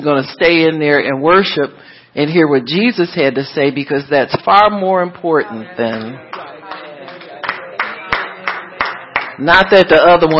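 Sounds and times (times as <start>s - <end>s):
speech: 0.0s - 6.3s, 9.4s - 10.3s
loud clapping: 5.9s - 9.4s.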